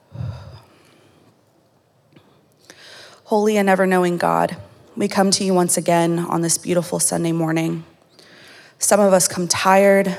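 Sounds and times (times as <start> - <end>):
deep breath in at a Sunday church service: 0.0 - 1.3, 2.2 - 3.2, 8.2 - 8.8
speech: 3.3 - 7.9, 8.8 - 10.1.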